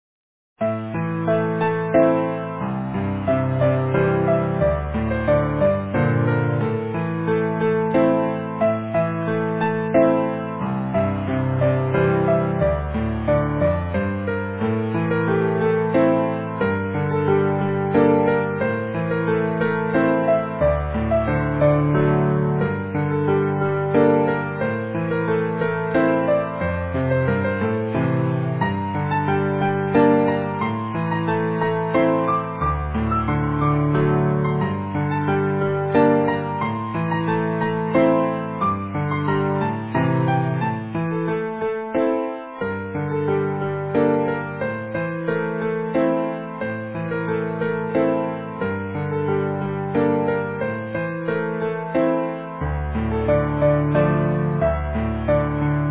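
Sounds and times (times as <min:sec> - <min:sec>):
easy piano: 0:00.6 - 0:55.9.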